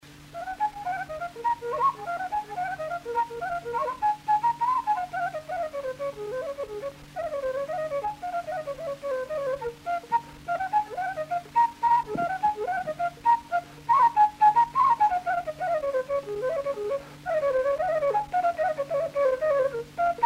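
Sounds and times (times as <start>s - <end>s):
fluier flute melody: 0.3s - 20.2s.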